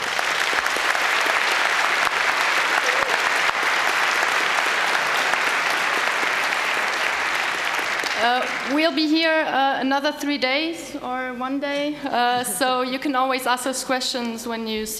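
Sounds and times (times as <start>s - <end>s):
audience applause for speakers: 0.0s - 9.1s
speech: 8.2s - 14.9s.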